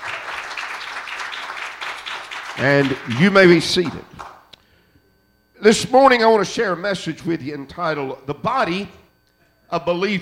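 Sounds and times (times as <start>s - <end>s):
church congregation clapping hands in praise during a morning worship service: 0.0s - 4.5s
speech: 2.6s - 4.3s, 5.6s - 9.0s, 9.7s - 10.2s.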